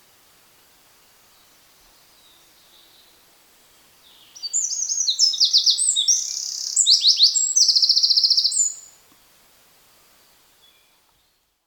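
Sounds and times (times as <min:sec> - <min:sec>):
Eurasian wren trilling song: 0:04.1 - 0:09.0.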